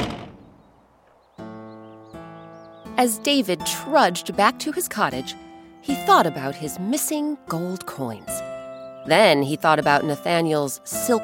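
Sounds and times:
door slamming shut: 0.0 - 0.8
speech: 3.0 - 8.4, 9.0 - 11.2.

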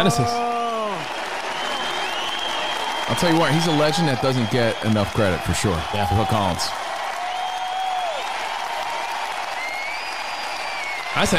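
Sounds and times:
speech: 0.0 - 0.5, 3.1 - 6.8, 11.2 - 11.3
crowd applauding: 0.0 - 11.3.

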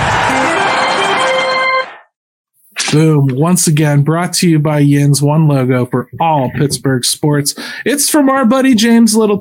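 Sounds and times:
old intro jingle of a sports fan show: 0.2 - 2.1
speech: 2.9 - 9.3.

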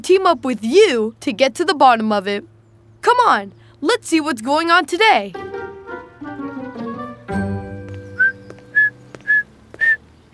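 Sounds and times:
speech: 0.0 - 5.5
soft instrumental music: 5.3 - 9.4
person whistling imitating bird song: 8.0 - 10.0.

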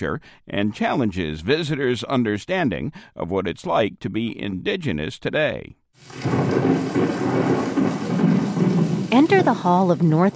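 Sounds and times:
speech: 0.0 - 7.7, 9.1 - 10.3
rain from the Great Plains played as a recording in a museum exhibition hall: 6.0 - 9.4
thunder from the Great Plains played as a recording in a museum exhibition hall: 6.0 - 10.3.

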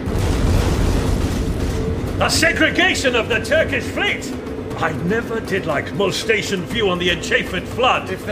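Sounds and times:
ship's guns firing in a staging of Othello: 0.1 - 3.1
speech: 2.2 - 8.3.

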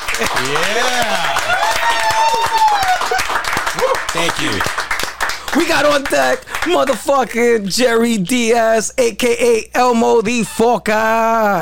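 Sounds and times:
live audience round of applause: 0.0 - 7.0
speech: 0.2 - 1.2, 5.6 - 11.6.

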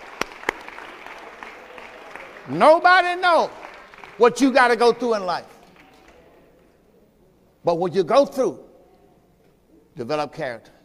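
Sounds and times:
audience clapping: 0.0 - 6.3
speech: 2.4 - 3.6, 4.2 - 5.5, 7.6 - 8.7, 10.0 - 10.7.

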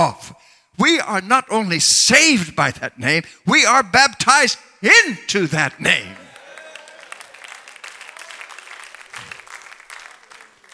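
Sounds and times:
speech: 0.1 - 6.2
audience applause: 6.2 - 10.7.

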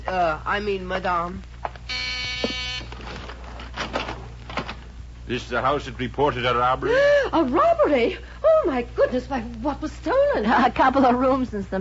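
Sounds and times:
speech: 0.1 - 1.5, 5.3 - 11.7
front door buzzer: 1.9 - 3.3.

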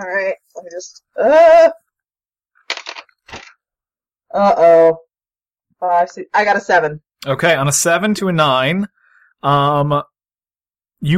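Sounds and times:
speech: 0.0 - 1.8, 4.3 - 5.0, 5.8 - 10.1, 11.0 - 11.1
dice being rolled: 2.7 - 3.5.

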